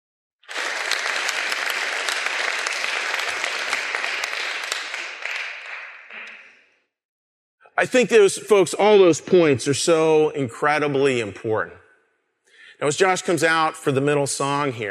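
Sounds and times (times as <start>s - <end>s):
audience applause: 0.4s - 6.5s
speech: 7.8s - 11.8s, 12.8s - 14.8s.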